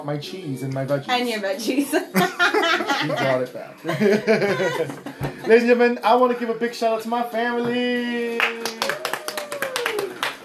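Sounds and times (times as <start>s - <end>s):
speech: 0.0s - 8.6s
sustained tone of music: 0.0s - 10.4s
laughter: 2.1s - 5.9s
thin scattered applause at a comedy lounge show: 8.3s - 10.4s.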